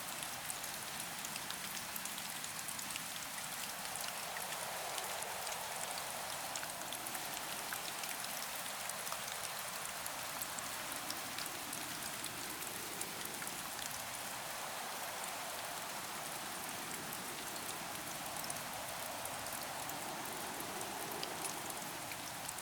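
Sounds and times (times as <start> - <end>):
rain ambience: 0.0 - 22.6.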